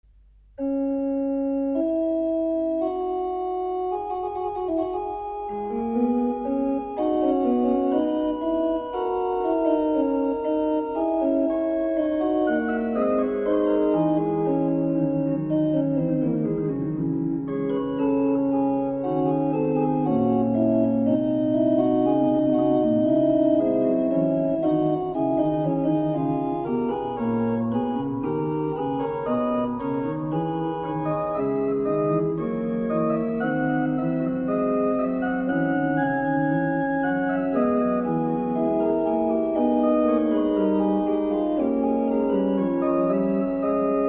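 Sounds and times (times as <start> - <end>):
organ mass: 0.2 - 44.0.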